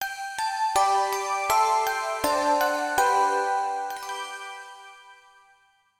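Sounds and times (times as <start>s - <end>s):
jingle music: 0.8s - 5.1s.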